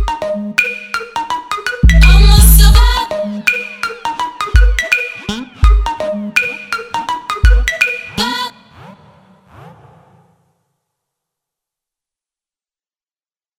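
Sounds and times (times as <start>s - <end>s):
trap remix: 1.8s - 9.2s.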